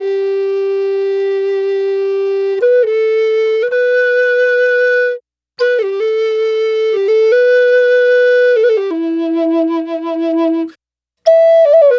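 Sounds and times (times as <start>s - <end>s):
Native American flute playing: 0.0s - 11.9s.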